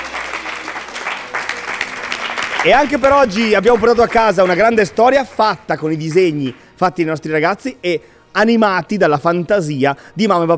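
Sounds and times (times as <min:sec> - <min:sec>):
audience applause: 0:00.0 - 0:06.7
speech: 0:02.6 - 0:10.5.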